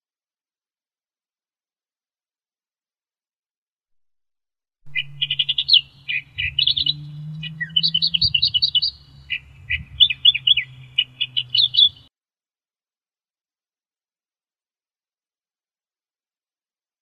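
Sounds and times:
Australian reed warbler song: 4.9s - 12.1s.

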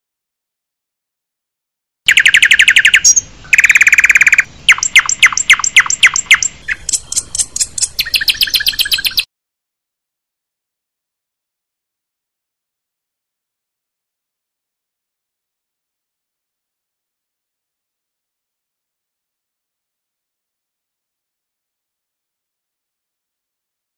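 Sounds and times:
murai and kacer birds singing: 2.1s - 9.3s.

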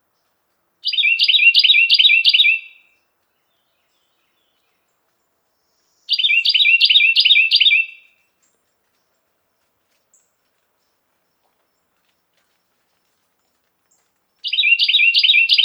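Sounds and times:
Carolina wren song: 0.2s - 9.2s, 13.9s - 15.6s.

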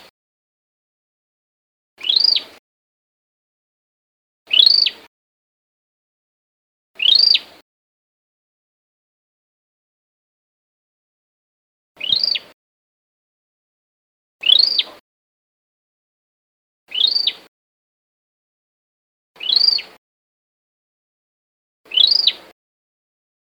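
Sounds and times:
Cambodian tailorbird alarm call: 2.0s - 2.6s, 4.5s - 5.1s, 7.0s - 7.5s, 12.0s - 12.6s, 14.4s - 15.0s, 16.9s - 17.5s, 19.4s - 20.0s, 21.9s - 22.5s.

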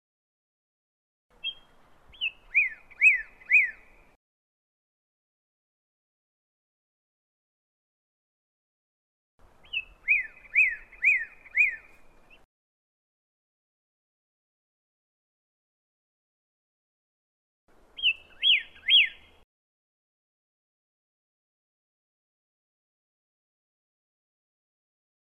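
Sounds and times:
pyrrhuloxia chirping: 1.4s - 4.1s, 9.6s - 12.5s, 18.0s - 19.4s.

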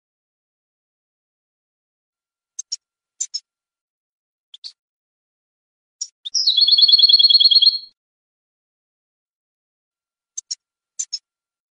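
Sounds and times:
European goldfinch chips and trill: 6.0s - 7.9s.

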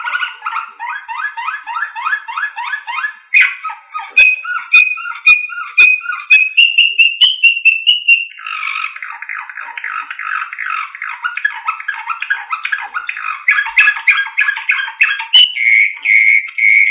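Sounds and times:
Slavujar style canary song: 0.0s - 16.9s.

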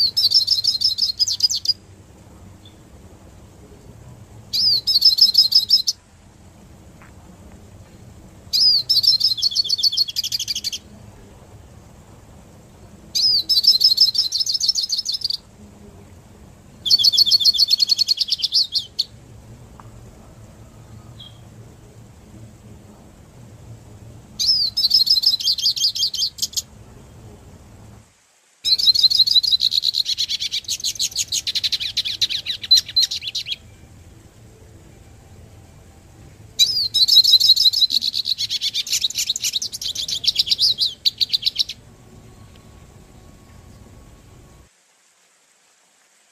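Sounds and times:
Hooded siskin twittering song: 0.0s - 1.8s, 2.5s - 3.0s, 4.4s - 6.0s, 7.9s - 11.0s, 12.7s - 15.5s, 16.7s - 19.2s, 20.7s - 21.6s, 24.4s - 27.4s, 28.6s - 44.7s.

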